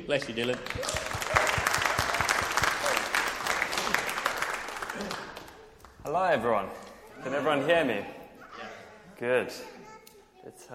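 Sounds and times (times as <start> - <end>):
speech: 0.1 - 1.0, 6.0 - 8.2, 9.2 - 9.7, 10.4 - 10.7
audience applause: 0.2 - 6.0.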